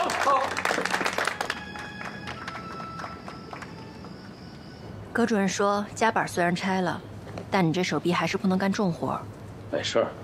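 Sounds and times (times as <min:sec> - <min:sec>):
applause: 0:00.0 - 0:04.0
speech: 0:05.2 - 0:10.2.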